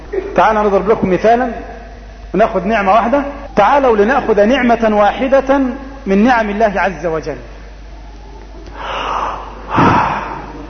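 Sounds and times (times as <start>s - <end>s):
speech: 0.4s - 1.7s, 2.3s - 7.5s
person taking a deep breath: 8.8s - 10.5s.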